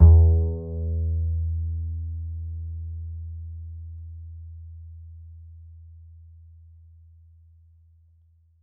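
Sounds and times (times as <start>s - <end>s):
upright bass D string: 0.0s - 2.9s.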